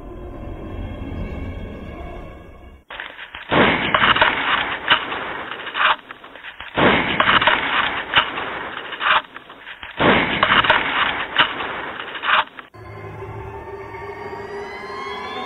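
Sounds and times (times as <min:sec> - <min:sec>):
gunshots in a recorded psychophony: 0:02.9 - 0:12.7.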